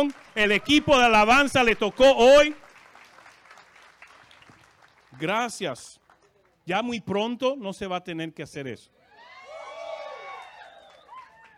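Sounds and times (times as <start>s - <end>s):
speech: 0.0s - 2.6s, 5.2s - 6.0s, 6.7s - 9.0s
audience applause: 0.0s - 6.2s, 9.7s - 11.5s.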